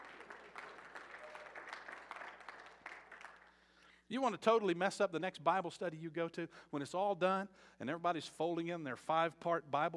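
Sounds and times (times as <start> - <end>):
audience clapping: 0.0 - 3.7
speech: 4.1 - 9.9.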